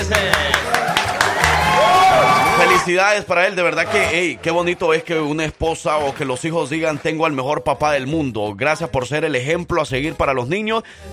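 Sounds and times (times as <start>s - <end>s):
speech: 0.0s - 0.7s, 2.6s - 11.1s
small group applauding and cheering: 0.0s - 3.0s, 3.9s - 7.5s.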